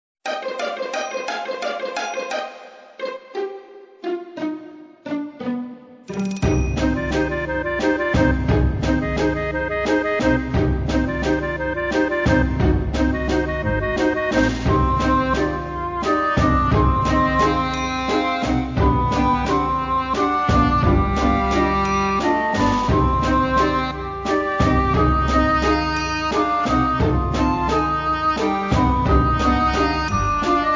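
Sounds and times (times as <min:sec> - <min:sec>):
waltz music: 0:00.3 - 0:30.7.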